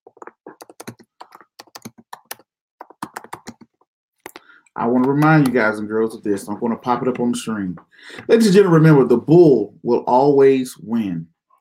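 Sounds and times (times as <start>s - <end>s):
computer keyboard typing: 0.0s - 5.6s
speech: 4.8s - 11.3s.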